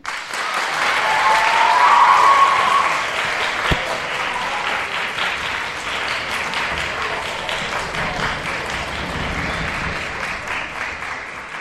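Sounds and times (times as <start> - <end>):
audience applause for orchestra: 0.0 - 11.5
crowd cheering: 0.0 - 11.5.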